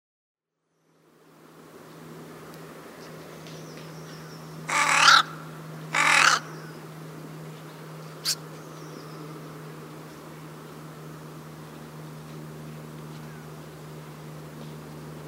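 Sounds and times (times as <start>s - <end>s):
crow cawing: 4.7s - 6.8s.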